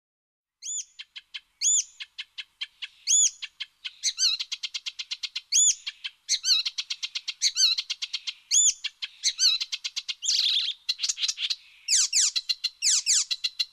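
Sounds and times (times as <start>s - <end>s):
bird chirping: 0.6s - 13.7s.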